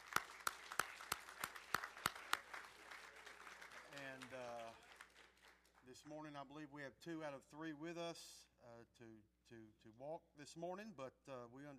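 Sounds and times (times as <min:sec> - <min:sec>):
audience applauding graduates: 0:00.0 - 0:05.9
speech: 0:04.2 - 0:04.9, 0:05.9 - 0:11.7.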